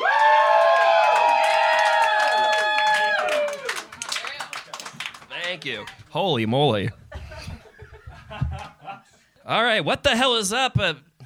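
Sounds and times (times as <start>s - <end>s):
audience applause: 0.0s - 6.0s
speech: 5.6s - 7.0s, 9.5s - 11.1s
laughter: 7.0s - 9.2s.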